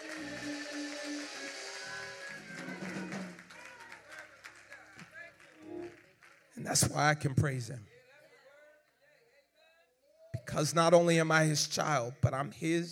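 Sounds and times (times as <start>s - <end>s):
audience clapping along: 0.0s - 7.0s
speech: 6.7s - 7.9s, 10.6s - 12.9s.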